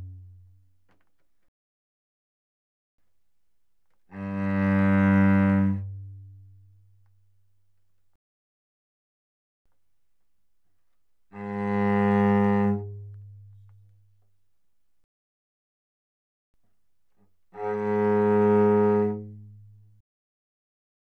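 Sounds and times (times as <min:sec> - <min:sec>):
cello bowed arco on the C string: 0:00.0 - 0:00.6, 0:04.1 - 0:06.9, 0:11.3 - 0:14.0, 0:17.6 - 0:20.0.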